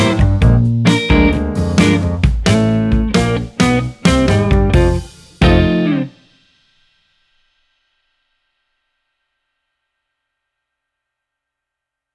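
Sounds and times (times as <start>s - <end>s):
blues backing track piano: 0.0s - 6.1s.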